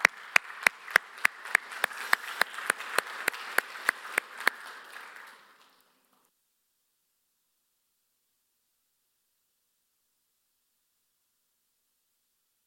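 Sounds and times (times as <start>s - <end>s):
church congregation applauding a youth reader coming on stage: 0.0s - 6.3s
sharp evenly spaced claps: 0.0s - 6.3s.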